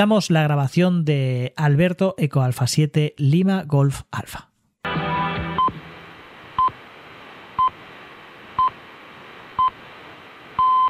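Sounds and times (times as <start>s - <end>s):
speech: 0.0s - 4.5s
broadcast static hiss: 4.9s - 10.8s
radio station time signal pips: 6.6s - 6.8s, 7.6s - 7.8s, 8.6s - 8.8s, 9.5s - 9.8s, 10.6s - 10.8s.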